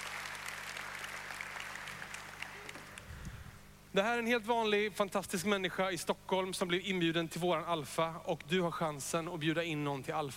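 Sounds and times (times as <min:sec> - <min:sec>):
audience applause: 0:00.0 - 0:03.1
speech: 0:03.9 - 0:10.3.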